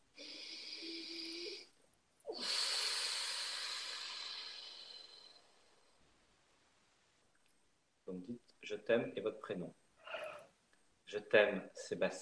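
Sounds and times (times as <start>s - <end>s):
deep breath: 0.1s - 1.7s, 2.3s - 6.1s
speech: 8.2s - 9.8s, 11.1s - 12.1s.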